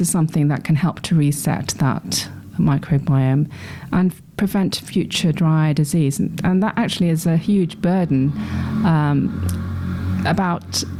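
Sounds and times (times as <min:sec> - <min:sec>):
speech: 0:00.0 - 0:10.9
very noisy motorbike passing: 0:06.8 - 0:10.9.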